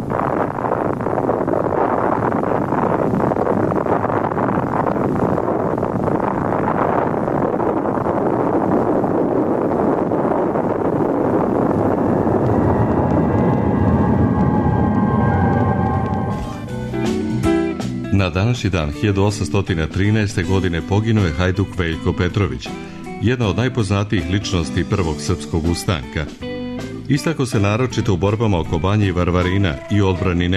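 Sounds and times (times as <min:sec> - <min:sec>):
atomic bomb explosion roar and rumble: 0:00.0 - 0:18.0
speech: 0:18.3 - 0:26.4, 0:27.1 - 0:30.5.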